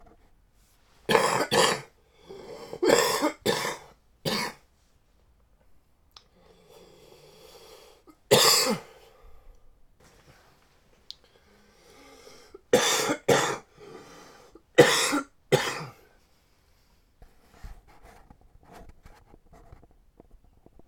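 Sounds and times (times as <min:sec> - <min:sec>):
man coughing: 0:01.1 - 0:01.9, 0:02.8 - 0:04.6, 0:08.3 - 0:08.9, 0:12.8 - 0:13.7, 0:14.8 - 0:16.0.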